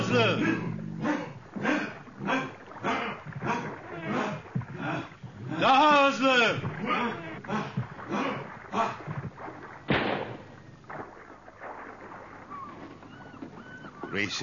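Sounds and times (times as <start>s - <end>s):
water and boat noise: 0.0s - 14.4s
speech: 0.1s - 1.1s, 14.2s - 14.4s
rifle shot: 9.9s - 11.1s.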